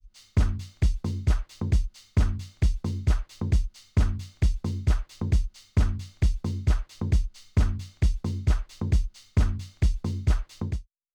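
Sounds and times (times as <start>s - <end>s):
Reloop Concorde Black loop: 0.4s - 10.4s.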